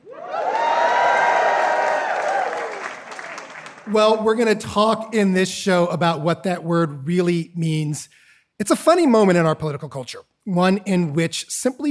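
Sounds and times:
live theater audience cheering, whooping and applauding: 0:00.0 - 0:04.2
speech: 0:03.9 - 0:11.8.

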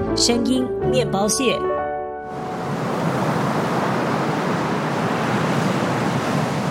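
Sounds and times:
speech: 0:00.2 - 0:01.8
ocean waves: 0:02.3 - 0:06.6.

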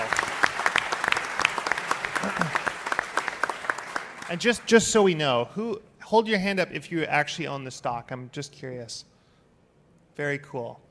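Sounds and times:
round of applause from a group: 0:00.0 - 0:05.3
speech: 0:04.3 - 0:09.1, 0:10.2 - 0:10.8.

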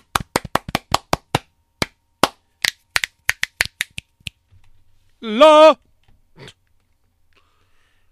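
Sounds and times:
hand claps for audio sync: 0:00.0 - 0:04.4
speech: 0:05.2 - 0:05.8.

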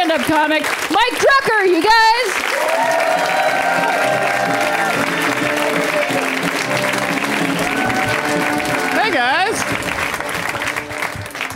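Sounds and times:
speech: 0:00.1 - 0:03.5
audience applause for a comedian: 0:00.1 - 0:11.5
cheers and whoops: 0:02.4 - 0:06.5, 0:07.2 - 0:09.5.

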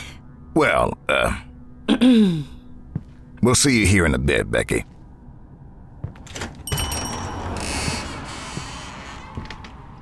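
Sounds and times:
speech: 0:00.6 - 0:02.6, 0:03.4 - 0:04.9
door creaking on its hinges and swinging shut: 0:06.2 - 0:10.0.

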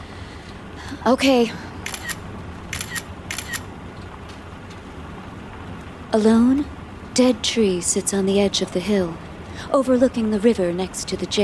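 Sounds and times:
speech: 0:00.8 - 0:01.7, 0:06.1 - 0:11.4
camera shutter clicking: 0:01.8 - 0:03.7.

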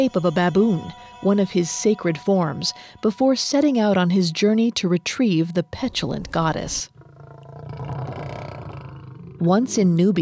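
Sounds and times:
speech: 0:00.0 - 0:06.9, 0:09.4 - 0:10.2
lioness roaring: 0:06.0 - 0:09.9.

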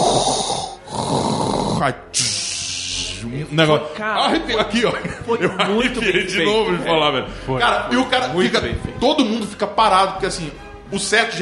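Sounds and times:
voice imitating mechanical respirator breathing: 0:00.0 - 0:03.2
speech: 0:01.8 - 0:02.3, 0:03.2 - 0:11.4
laughter: 0:04.2 - 0:07.6.

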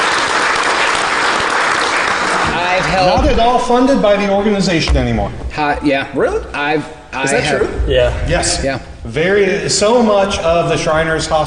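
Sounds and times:
people clapping: 0:00.0 - 0:03.7
speech: 0:02.9 - 0:11.4.

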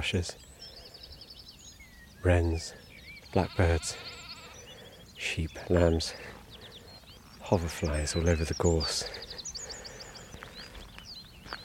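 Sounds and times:
speech: 0:00.0 - 0:00.5, 0:02.2 - 0:04.2, 0:05.2 - 0:06.3, 0:07.5 - 0:09.2
reed bunting calling in the bracken: 0:00.0 - 0:11.6.

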